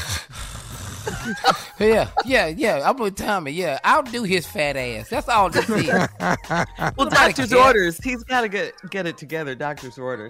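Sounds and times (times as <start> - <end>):
heavy labored breathing: 0.0 - 2.2
laughter: 1.1 - 2.5, 5.4 - 7.8
speech: 1.2 - 10.2.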